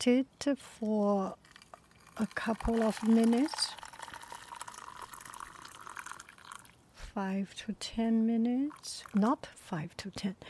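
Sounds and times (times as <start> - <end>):
speech: 0.0 - 1.5, 2.2 - 3.8, 7.2 - 10.4
boiling water poured over oolong tea: 0.8 - 6.8, 8.5 - 9.4.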